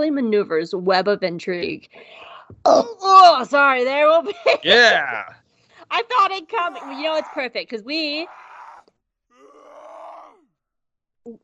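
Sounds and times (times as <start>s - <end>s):
speech: 0.0s - 8.4s
laughter: 4.2s - 5.3s
frog screaming outside window: 6.6s - 8.8s, 9.4s - 10.4s.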